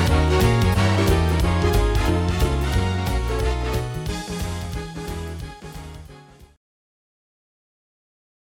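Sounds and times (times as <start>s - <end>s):
big band music: 0.0s - 6.6s.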